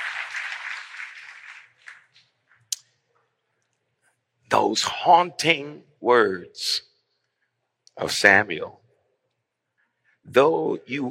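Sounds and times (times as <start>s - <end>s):
audience hand clapping: 0.0s - 2.7s
speech: 4.5s - 6.9s, 8.0s - 8.8s, 10.3s - 11.0s.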